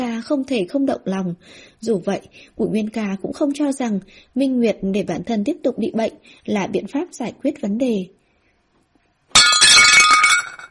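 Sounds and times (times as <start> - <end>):
speech: 0.0 - 8.2
porcelain shattering on the floor: 9.3 - 10.6.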